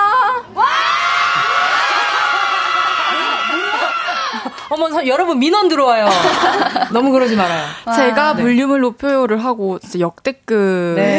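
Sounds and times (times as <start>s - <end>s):
studio audience fans cheering and screaming: 0.5s - 4.7s
laughter: 1.4s - 4.8s, 6.0s - 7.5s
speech: 4.7s - 11.1s.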